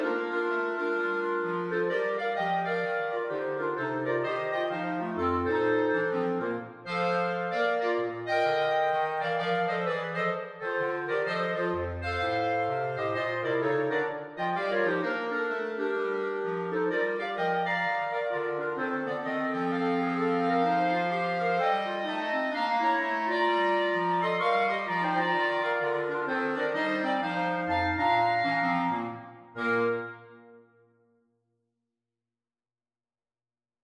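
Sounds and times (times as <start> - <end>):
clarinet melody: 0.0 - 31.0.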